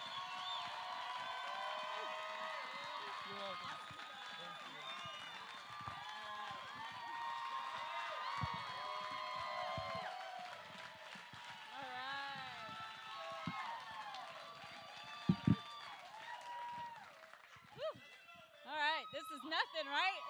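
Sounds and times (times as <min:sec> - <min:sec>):
audience applause: 0:00.0 - 0:20.2
crowd cheering and whooping: 0:00.0 - 0:20.2.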